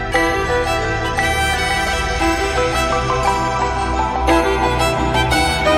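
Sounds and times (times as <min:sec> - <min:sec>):
violin cover: 0:00.1 - 0:05.7.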